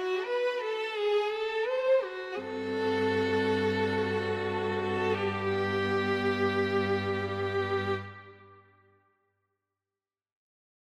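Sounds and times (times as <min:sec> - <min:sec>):
string quartet playing a miniature: 0:00.0 - 0:08.7.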